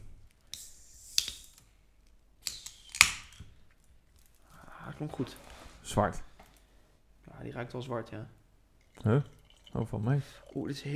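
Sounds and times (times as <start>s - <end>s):
speech: 5.0s - 6.3s, 7.4s - 8.4s, 9.0s - 10.9s
beer poured from a 33 centilitre can: 8.8s - 10.9s.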